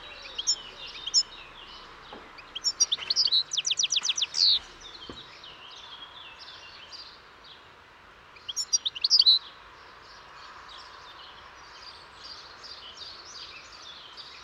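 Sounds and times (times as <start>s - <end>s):
European goldfinch Carduelis carduelis calling: 0.0s - 5.2s, 8.5s - 9.4s.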